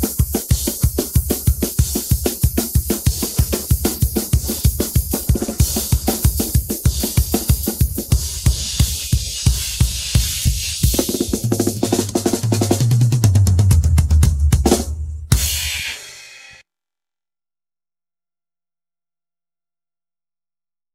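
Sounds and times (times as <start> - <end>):
drums: 0.0 - 16.6.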